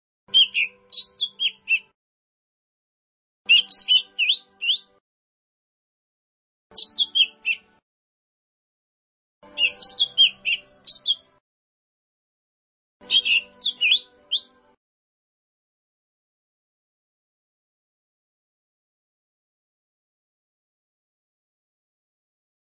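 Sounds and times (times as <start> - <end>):
bird song: 0.3 - 2.0, 3.5 - 5.0, 6.7 - 7.8, 9.4 - 11.4, 13.0 - 14.8.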